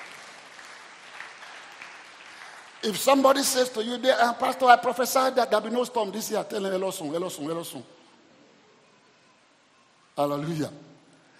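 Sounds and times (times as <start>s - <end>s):
church congregation clapping hands during a sermon: 0.0s - 3.7s
speech: 2.8s - 8.0s, 10.2s - 10.9s.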